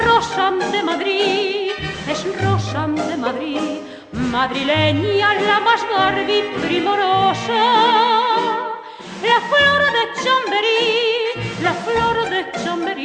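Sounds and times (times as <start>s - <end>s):
chotis dance music: 0.0s - 13.0s.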